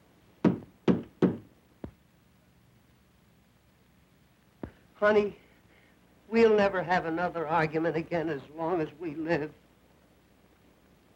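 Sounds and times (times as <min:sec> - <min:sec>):
knocking on wood: 0:00.4 - 0:02.0
speech: 0:05.0 - 0:05.4, 0:06.3 - 0:09.6.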